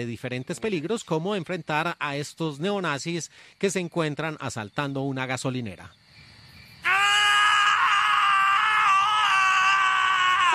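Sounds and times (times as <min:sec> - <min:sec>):
speech: 0:00.0 - 0:06.0
two men screaming in a film clip: 0:06.8 - 0:10.5.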